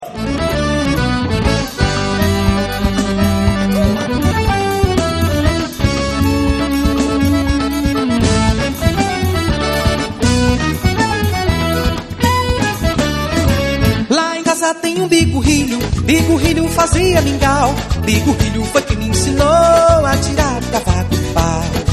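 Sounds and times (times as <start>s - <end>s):
forró music: 0.0s - 21.9s.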